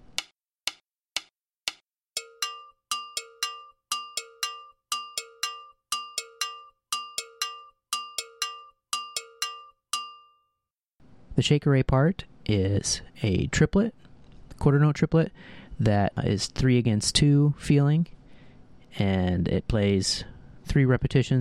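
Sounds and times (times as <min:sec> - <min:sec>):
cowbell pattern with high bell muted against the thigh: 0:01.7 - 0:10.6
speech: 0:11.4 - 0:14.0, 0:14.6 - 0:18.2, 0:18.9 - 0:21.3.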